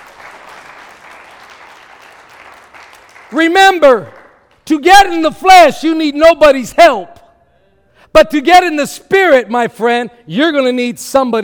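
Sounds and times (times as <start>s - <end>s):
audience clapping: 0.0s - 4.7s
speech: 3.3s - 7.2s, 8.1s - 11.4s.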